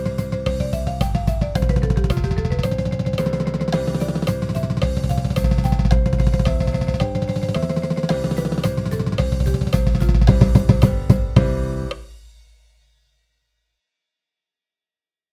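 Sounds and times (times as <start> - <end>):
marching percussion cheesy rolls at 110 BPM: 0.0 - 12.2.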